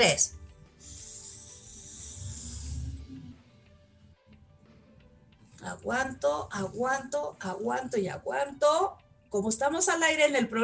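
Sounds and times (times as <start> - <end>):
speech: 0.0 - 0.4, 5.6 - 10.6
slow inhalation through the nose: 0.7 - 3.4.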